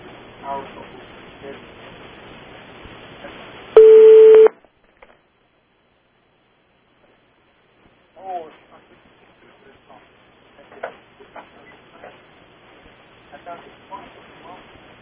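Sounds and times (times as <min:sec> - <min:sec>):
electronic telephone tone from a call passed through to a studio phone line: 0:03.8 - 0:04.5.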